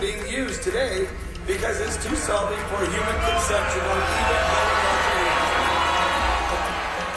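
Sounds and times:
speech: 0.0s - 5.0s
protesters booing and jeering at a county meeting on a water project: 3.0s - 7.1s.

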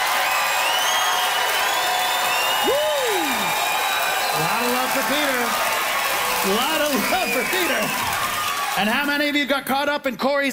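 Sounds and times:
dense crowd roar: 0.0s - 9.1s
live audience clapping to vote for a contestant in a debate show: 0.0s - 9.5s
bright whistle-like tones: 0.2s - 4.5s
speech: 5.0s - 5.7s, 6.4s - 8.2s, 8.8s - 10.5s.

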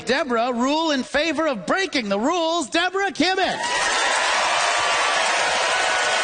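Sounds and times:
speech: 0.1s - 3.9s
audience applause: 3.6s - 6.2s.

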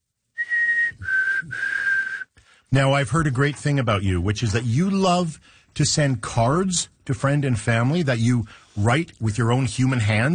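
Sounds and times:
person whistling imitation of black-capped chickadee call: 0.4s - 2.4s
speech: 2.7s - 10.3s.

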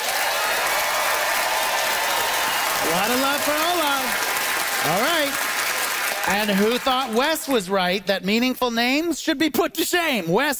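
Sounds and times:
audience at a live debate in Victoria applauding: 0.0s - 8.2s
speech: 2.8s - 5.5s, 6.3s - 10.5s.

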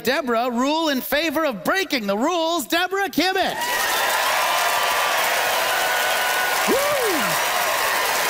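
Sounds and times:
speech: 0.0s - 3.9s
audience applause vote: 3.6s - 8.2s.

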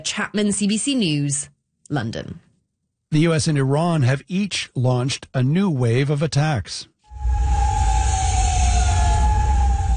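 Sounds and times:
speech: 0.0s - 2.4s, 3.1s - 7.5s
air raid sirens wailing over Kuwait City: 7.1s - 9.9s.

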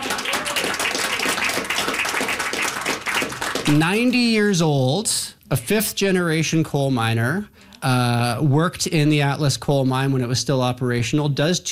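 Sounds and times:
audience applause: 0.0s - 4.1s
speech: 3.7s - 11.7s.

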